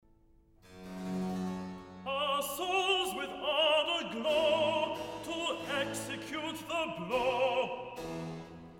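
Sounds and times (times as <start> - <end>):
person singing recitative: 2.1 - 8.0.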